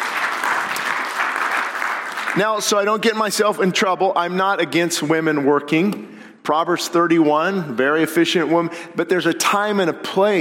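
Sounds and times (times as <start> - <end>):
audience applause: 0.0 - 2.6
speech: 2.4 - 10.4.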